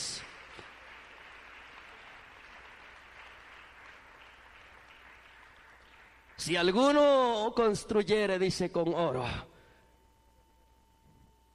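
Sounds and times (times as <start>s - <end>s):
audience applauding: 0.0s - 7.0s
speech: 6.4s - 9.5s.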